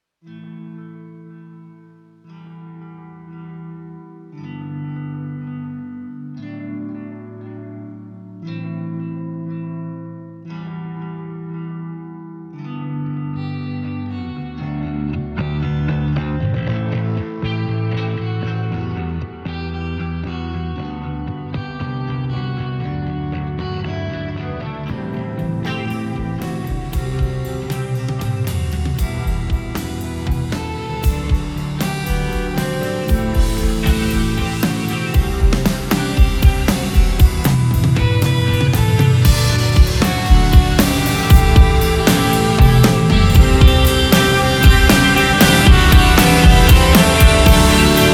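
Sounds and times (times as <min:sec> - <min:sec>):
instrumental music: 0:00.2 - 0:48.1.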